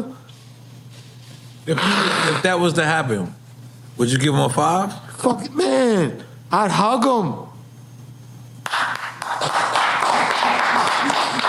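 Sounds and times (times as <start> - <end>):
speech: 1.6 - 3.4, 4.0 - 7.5
hand clapping: 8.6 - 11.4.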